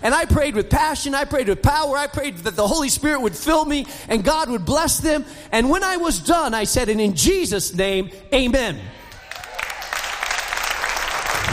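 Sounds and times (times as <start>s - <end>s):
speech: 0.0s - 9.0s
audience clapping at a religious talk: 9.1s - 11.5s.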